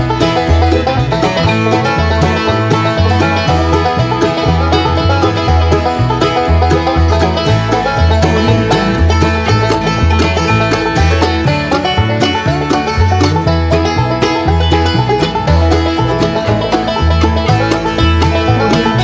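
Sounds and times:
country banjo music: 0:00.0 - 0:19.0.

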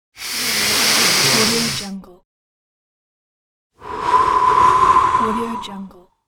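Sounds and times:
person inhaling and exhaling during yoga: 0:00.1 - 0:01.8, 0:03.8 - 0:05.9.

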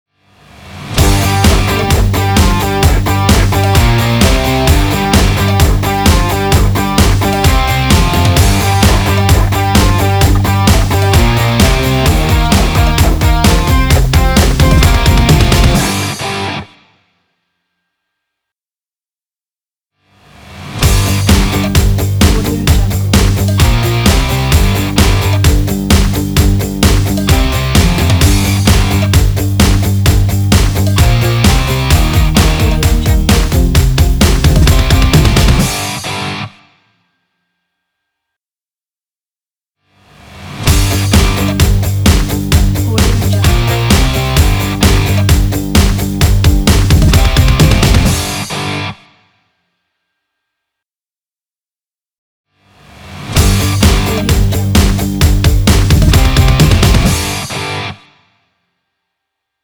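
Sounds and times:
rock music logo: 0:00.6 - 0:16.7, 0:20.5 - 0:36.5, 0:40.3 - 0:49.0, 0:53.0 - 0:58.0.

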